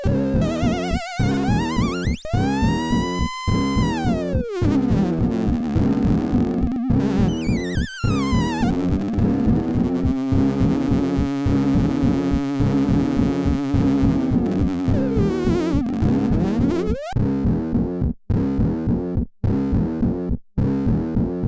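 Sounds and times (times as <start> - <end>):
modular synthesizer squeal: 0.0 - 17.2
modular synthesizer bass: 0.0 - 21.4.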